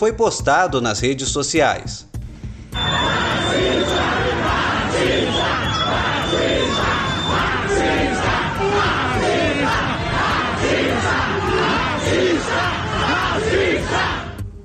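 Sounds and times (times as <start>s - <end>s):
speech: 0.0s - 2.2s
passengers shouting in protest on subway: 2.8s - 14.4s.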